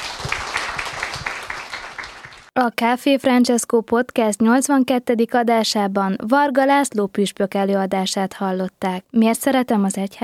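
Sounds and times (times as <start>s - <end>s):
audience applause: 0.0s - 2.5s
speech: 2.6s - 10.2s.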